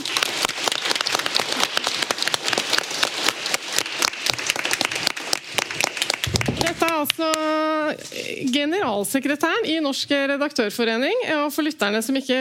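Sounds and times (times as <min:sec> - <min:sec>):
audience applause: 0:00.0 - 0:07.5
speech: 0:07.0 - 0:12.3.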